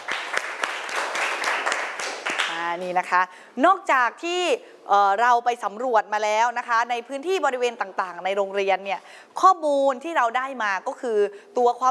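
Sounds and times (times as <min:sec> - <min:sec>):
students in a school classroom applauding: 0:00.0 - 0:02.6
speech: 0:02.8 - 0:11.9.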